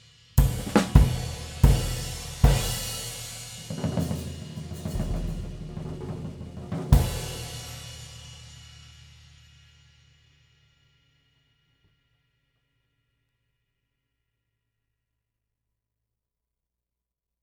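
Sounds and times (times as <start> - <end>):
20-inch Zildjian K flat ride cymbal: 0.0 - 11.1.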